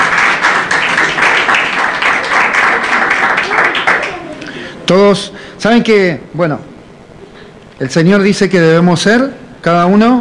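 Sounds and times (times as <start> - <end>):
audience applauding: 0.0 - 4.6
speech: 4.9 - 6.7, 7.8 - 10.1.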